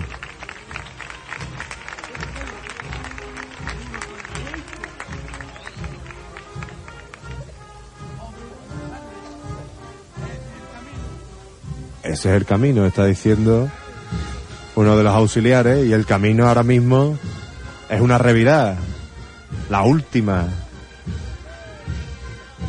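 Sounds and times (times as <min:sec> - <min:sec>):
crowd clapping in rhythm along to procession march: 0:00.0 - 0:07.6
brass procession march: 0:00.0 - 0:22.6
speech: 0:12.1 - 0:13.8, 0:14.8 - 0:17.2, 0:17.9 - 0:18.9, 0:19.7 - 0:20.6.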